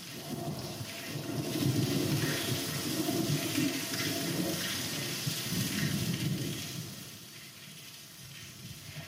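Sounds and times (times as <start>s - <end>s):
thunderstorm: 0.0s - 7.2s.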